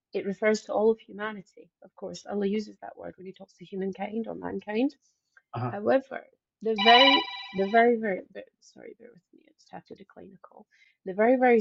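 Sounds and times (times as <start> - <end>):
speech: 0.1 - 11.6
phone ringing with a melodic ringtone: 6.8 - 7.8.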